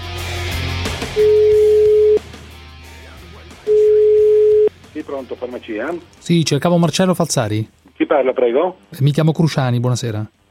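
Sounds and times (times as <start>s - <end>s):
telephone ringback tone on a call to a pharmacy: 1.2s - 2.2s, 3.7s - 4.7s
noise: 3.6s - 10.4s
speech: 5.1s - 10.4s.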